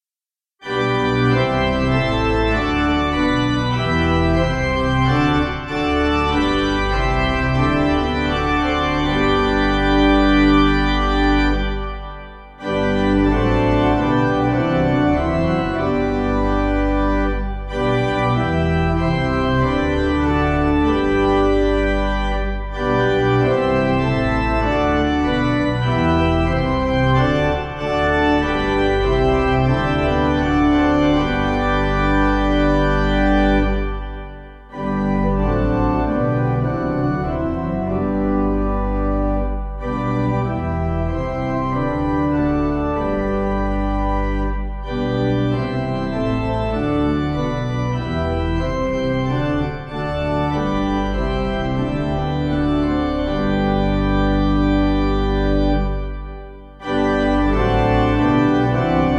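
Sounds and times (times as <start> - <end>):
pipe organ playing a hymn: 0.6 - 59.1.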